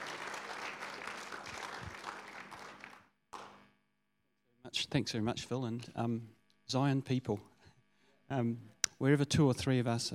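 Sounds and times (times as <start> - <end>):
church congregation applause: 0.0 - 3.6
speech: 4.7 - 7.5, 8.3 - 10.1.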